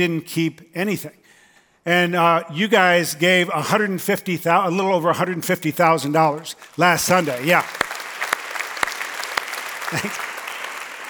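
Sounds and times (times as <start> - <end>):
speech: 0.0 - 1.2, 1.8 - 7.8, 9.9 - 10.3
audience applause: 6.8 - 11.0.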